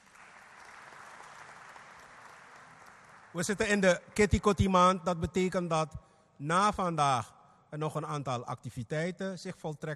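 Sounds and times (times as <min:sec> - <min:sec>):
audience applause: 0:00.0 - 0:03.7
speech: 0:03.4 - 0:09.9.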